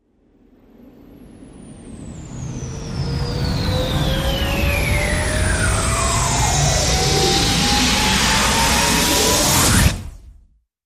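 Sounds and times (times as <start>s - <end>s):
short rising sound: 1.8s - 10.2s.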